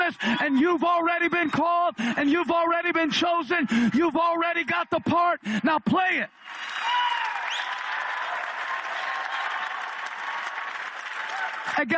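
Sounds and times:
speech: 0.1 - 7.2, 11.6 - 11.9
audience standing and clapping: 6.3 - 11.9.

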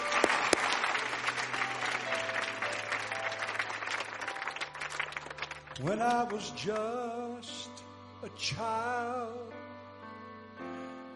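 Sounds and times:
audience hand clapping: 0.0 - 7.0
speech: 5.8 - 9.6.

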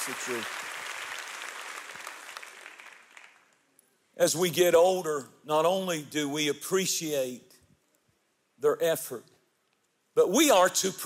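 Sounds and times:
speech: 0.0 - 0.7, 4.2 - 7.5, 8.6 - 9.3, 10.2 - 11.0
audience applause: 0.0 - 3.5.

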